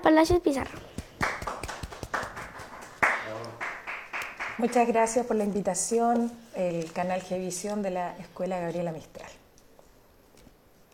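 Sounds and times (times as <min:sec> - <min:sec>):
speech: 0:00.1 - 0:00.9, 0:04.6 - 0:09.2
audience clapping: 0:00.8 - 0:05.0.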